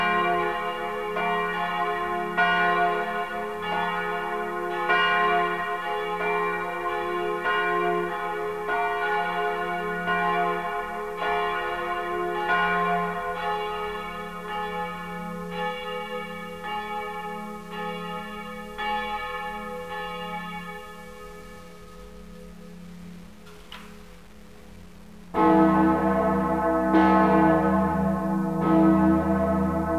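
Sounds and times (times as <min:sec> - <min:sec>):
full peal of church bells at Easter: 0:00.0 - 0:22.8, 0:25.4 - 0:29.9.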